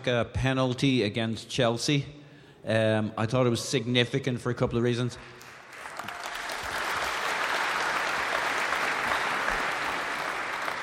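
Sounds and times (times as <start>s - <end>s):
speech: 0.0s - 5.4s
audience clapping: 5.4s - 10.8s.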